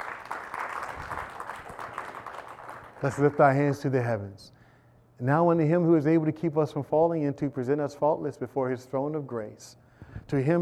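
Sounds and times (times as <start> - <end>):
audience clapping in praise: 0.0 - 3.6
speech: 3.0 - 4.6, 5.2 - 10.5.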